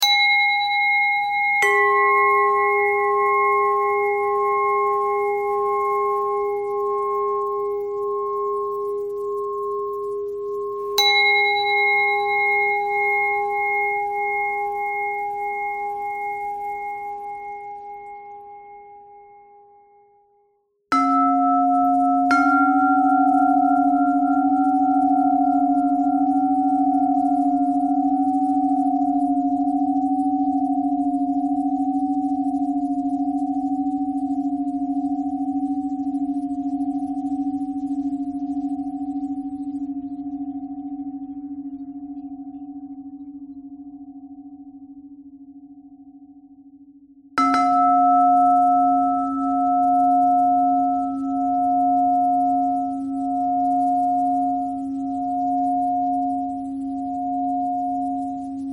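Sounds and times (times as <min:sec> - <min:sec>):
pentatonic bell melody: 0:00.0 - 0:20.2, 0:20.9 - 0:46.4, 0:47.4 - 0:58.7.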